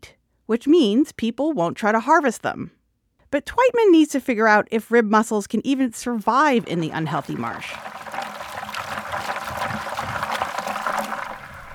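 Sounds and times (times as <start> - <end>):
speech: 0.0 - 7.9
water sloshing as mussels are rinsed in a bucket: 6.0 - 11.7.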